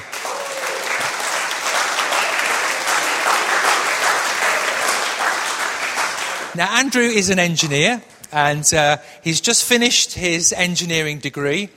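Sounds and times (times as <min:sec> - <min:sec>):
audience applause greeting a guest: 0:00.0 - 0:06.6
speech: 0:06.6 - 0:11.7.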